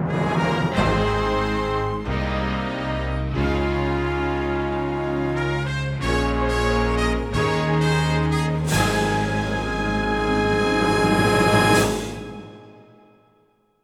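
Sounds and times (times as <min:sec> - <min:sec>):
fanfare: 0:00.1 - 0:13.3.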